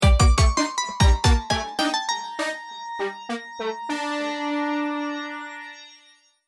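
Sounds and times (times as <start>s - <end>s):
game over sound: 0.0s - 4.2s.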